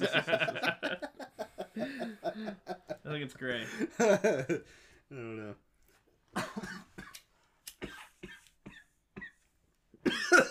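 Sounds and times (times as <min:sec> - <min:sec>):
laughter: 0:00.0 - 0:04.6
speech: 0:03.3 - 0:05.6
people coughing: 0:06.4 - 0:07.2, 0:07.8 - 0:09.4, 0:10.0 - 0:10.4.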